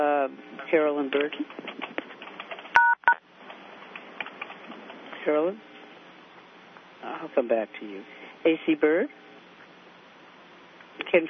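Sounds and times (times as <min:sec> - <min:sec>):
speech: 0:00.0 - 0:02.0, 0:05.2 - 0:05.7, 0:07.3 - 0:09.3
telephone keypad tones for pound and one: 0:02.8 - 0:03.2.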